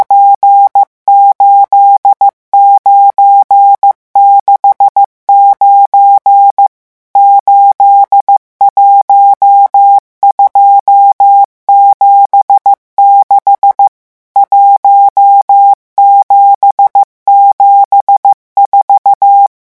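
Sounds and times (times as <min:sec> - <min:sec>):
morse code digits at speed 14: 0:00.0 - 0:19.6.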